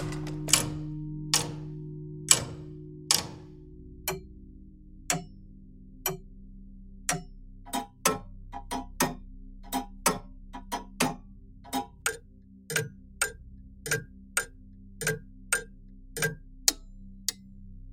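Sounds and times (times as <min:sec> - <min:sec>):
mechanical sounds: 0:00.0 - 0:03.5
clocks: 0:00.0 - 0:04.3, 0:05.1 - 0:05.3, 0:07.1 - 0:17.4.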